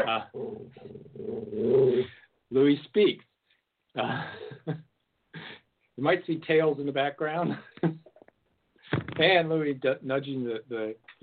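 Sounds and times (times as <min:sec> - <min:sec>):
poodles growling at a cat: 0:00.0 - 0:02.2
speech: 0:00.0 - 0:03.3, 0:04.0 - 0:04.9, 0:06.0 - 0:08.1, 0:08.9 - 0:11.2.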